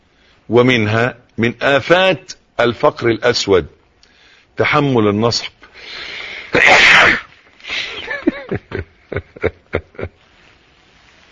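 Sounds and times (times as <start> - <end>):
speech: 0.5 - 3.8, 4.6 - 7.2, 8.5 - 10.2
loud forceful sneeze: 6.4 - 7.4.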